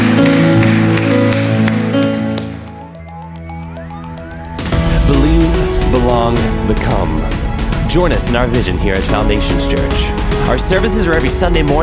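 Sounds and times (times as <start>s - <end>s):
crowd clapping: 0.0s - 3.7s
sustained musical tones: 0.0s - 11.5s
speech: 7.9s - 11.8s.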